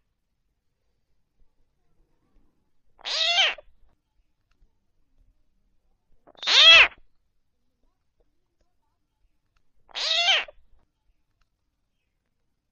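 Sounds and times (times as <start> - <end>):
field frogs calling: 3.0 - 3.6, 9.9 - 10.6.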